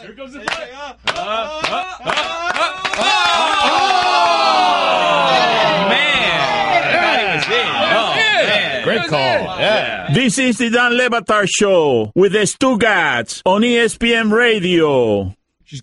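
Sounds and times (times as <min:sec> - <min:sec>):
speech: 0:00.0 - 0:04.6, 0:09.0 - 0:15.8
loud overlapping voices: 0:00.0 - 0:10.1
people clapping while awaiting a tennis challenge: 0:00.4 - 0:04.6
crowd din with people talking: 0:01.1 - 0:10.1.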